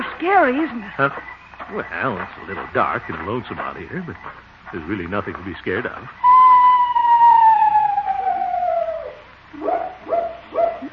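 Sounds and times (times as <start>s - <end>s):
speech: 0.2s - 6.3s
screech owl call: 6.2s - 10.9s.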